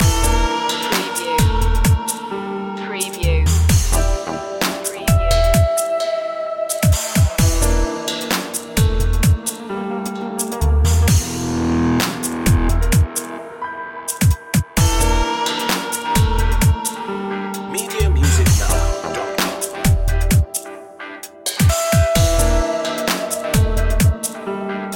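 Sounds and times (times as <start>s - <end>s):
detective music loop: 0.0s - 13.4s, 14.1s - 24.9s.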